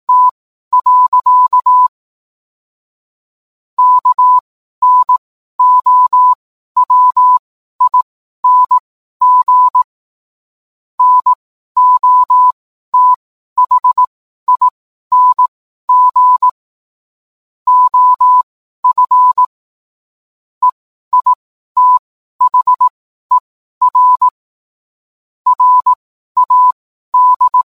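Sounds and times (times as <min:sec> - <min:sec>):
morse code beeps: 0:00.1 - 0:01.9, 0:03.8 - 0:09.9, 0:11.0 - 0:16.6, 0:17.7 - 0:19.5, 0:20.6 - 0:24.4, 0:25.5 - 0:27.7.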